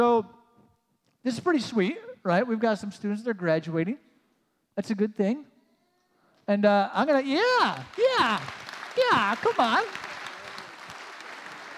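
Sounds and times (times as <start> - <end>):
speech: 0.0 - 0.4, 1.2 - 4.1, 4.8 - 5.5, 6.5 - 10.0
group applause: 7.4 - 11.7
single hand clap: 7.7 - 11.7.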